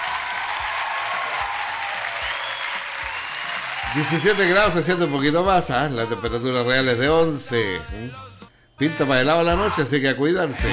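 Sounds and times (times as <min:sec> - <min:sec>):
audience applause: 0:00.0 - 0:04.4
speech: 0:03.9 - 0:10.7.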